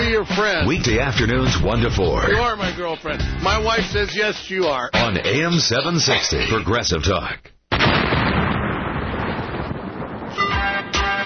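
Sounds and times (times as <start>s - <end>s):
speech: 0.2s - 8.1s
bomb explosion sound effect: 7.7s - 11.0s.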